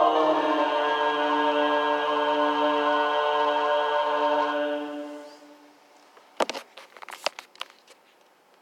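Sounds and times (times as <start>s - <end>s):
alto with MIDI: 0.0s - 5.7s.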